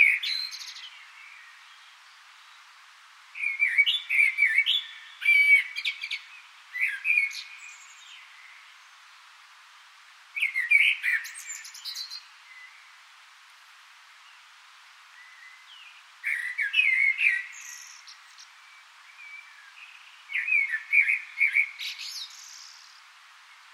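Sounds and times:
common blackbird whistled song: 0:00.0 - 0:01.8, 0:03.4 - 0:08.6, 0:10.4 - 0:12.9, 0:15.2 - 0:23.0.

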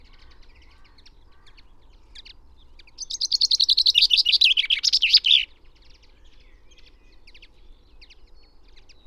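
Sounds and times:
common chaffinch Fringilla coelebs song: 0:03.0 - 0:05.5.

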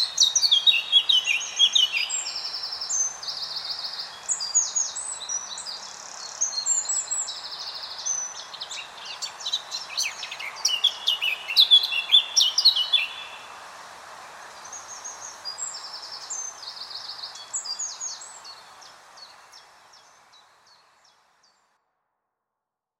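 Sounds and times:
Eurasian blackcap singing: 0:00.0 - 0:13.4.

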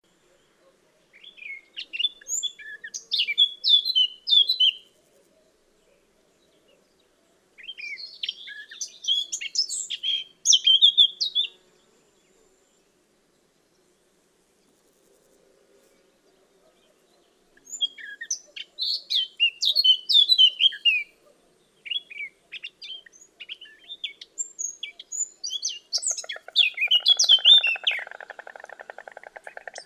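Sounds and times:
Eurasian blackcap warbling song: 0:01.2 - 0:04.9, 0:07.6 - 0:11.6, 0:17.6 - 0:21.2, 0:21.9 - 0:29.8.

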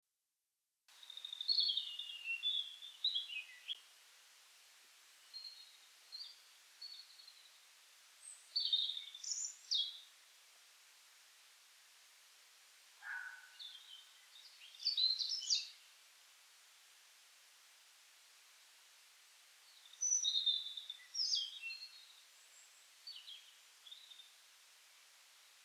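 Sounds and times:
European robin song: 0:00.9 - 0:03.8, 0:08.2 - 0:10.1, 0:13.0 - 0:15.8, 0:19.6 - 0:24.4.

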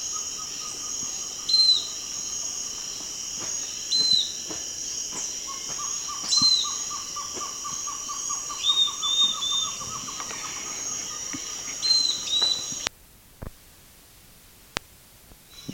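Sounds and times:
clear whistled bird notes: 0:00.0 - 0:02.6, 0:03.6 - 0:04.4, 0:05.4 - 0:12.9
steady high insect hum: 0:00.0 - 0:12.9, 0:15.5 - 0:15.7.

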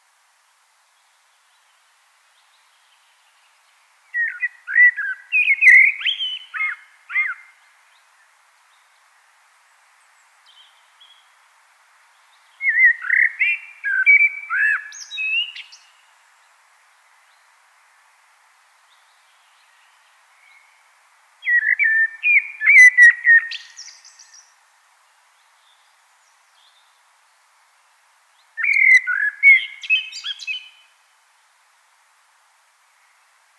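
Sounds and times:
common blackbird singing: 0:04.1 - 0:07.6, 0:12.6 - 0:15.9, 0:21.4 - 0:24.5, 0:28.6 - 0:30.9.

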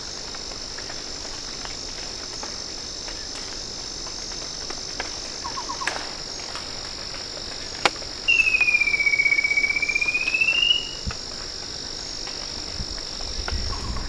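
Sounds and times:
shrill hum: 0:00.0 - 0:14.0
bird pulsing whistled trill: 0:08.3 - 0:11.0.

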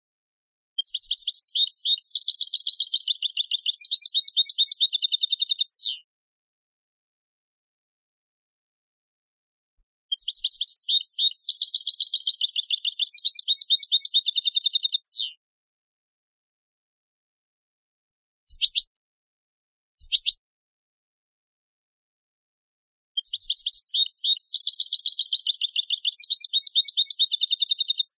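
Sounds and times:
European goldfinch Carduelis carduelis twittering trills: 0:00.8 - 0:06.0, 0:10.1 - 0:15.3, 0:23.2 - 0:28.1.

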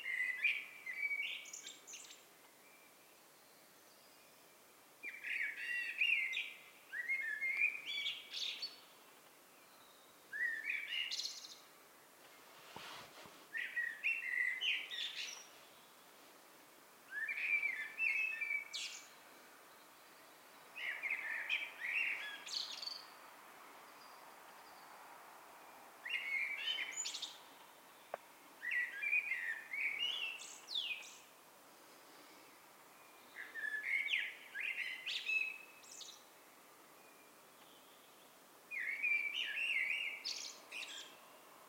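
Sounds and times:
Eurasian blackbird singing: 0:00.0 - 0:11.7, 0:13.5 - 0:16.0, 0:17.1 - 0:23.2, 0:26.0 - 0:31.3, 0:33.0 - 0:36.3, 0:37.0 - 0:41.3.

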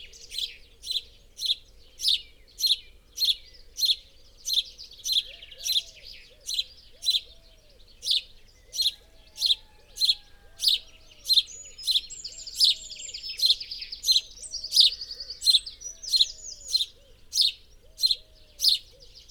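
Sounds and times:
house sparrow Passer domesticus chirping: 0:00.0 - 0:19.2.

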